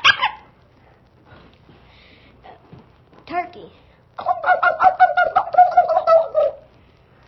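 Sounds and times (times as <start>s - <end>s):
dove cooing: 0.0s - 0.5s, 4.2s - 6.7s
speech: 3.6s - 5.0s.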